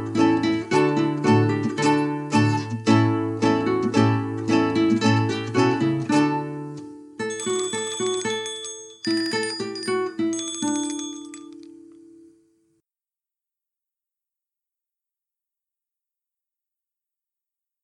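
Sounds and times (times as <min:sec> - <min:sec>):
instrumental music without vocals: 0:00.0 - 0:12.5.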